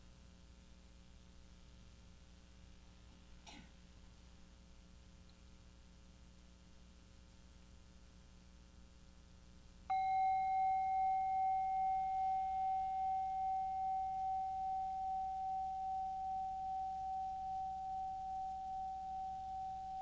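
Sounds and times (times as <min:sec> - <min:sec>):
bell ringing to end meditation: 0:09.9 - 0:19.9.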